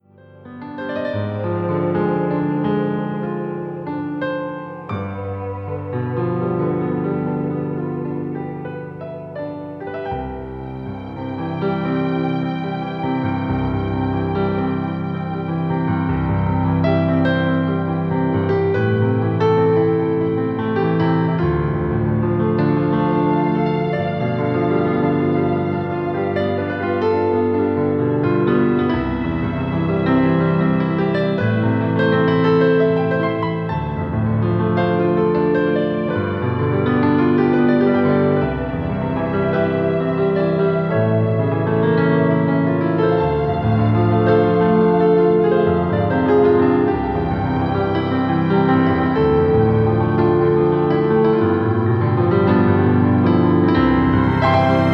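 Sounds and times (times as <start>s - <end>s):
piano fragment: 0.0s - 54.9s.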